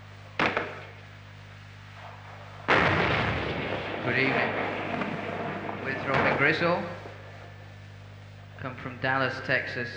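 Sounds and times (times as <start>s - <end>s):
steady low hum: 0.0s - 9.9s
M40A1 106 mm recoilless rifle firing: 2.7s - 7.6s
speech: 4.1s - 4.7s, 5.9s - 7.0s, 8.7s - 9.9s.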